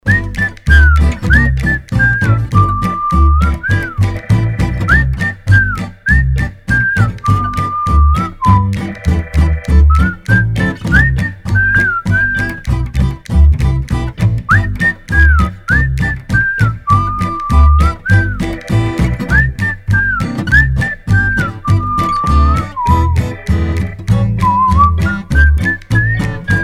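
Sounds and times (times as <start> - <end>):
person whistling: 0.0 - 13.2, 14.4 - 26.6.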